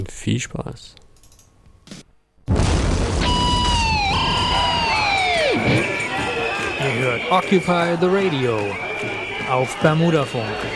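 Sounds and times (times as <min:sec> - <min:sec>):
speech: 0:00.0 - 0:01.0, 0:05.6 - 0:06.0, 0:06.8 - 0:10.7
sustained high guitar tones: 0:03.2 - 0:07.9
rock track: 0:03.2 - 0:09.6.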